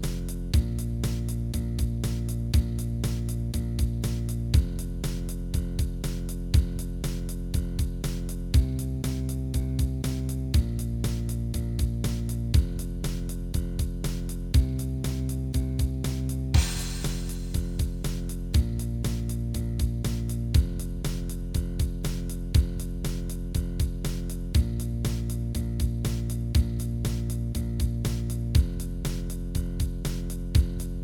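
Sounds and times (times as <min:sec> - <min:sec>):
blues bass line: 0:00.0 - 0:31.0.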